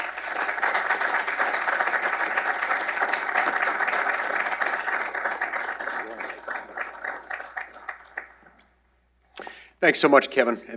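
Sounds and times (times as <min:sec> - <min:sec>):
audience applause: 0:00.0 - 0:08.6
speech: 0:09.8 - 0:10.7.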